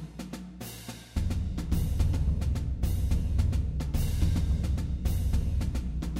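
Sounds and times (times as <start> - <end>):
musical cadence: 1.2 - 6.1.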